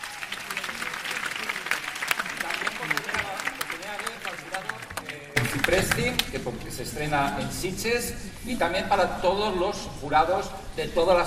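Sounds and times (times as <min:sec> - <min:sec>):
audience applause for the jury: 0:00.0 - 0:06.3
speech: 0:05.7 - 0:11.2.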